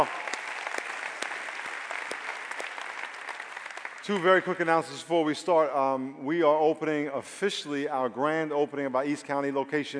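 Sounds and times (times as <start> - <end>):
sharp individual claps: 0.0 - 4.4
congregation applauding at a church service at The Rock: 0.0 - 5.0
speech: 4.0 - 9.9.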